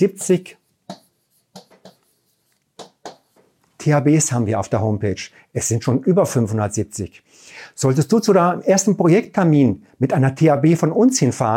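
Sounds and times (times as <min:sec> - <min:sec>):
speech: 0:00.0 - 0:01.0, 0:03.8 - 0:11.5
pen strokes writing by hand: 0:00.2 - 0:03.5.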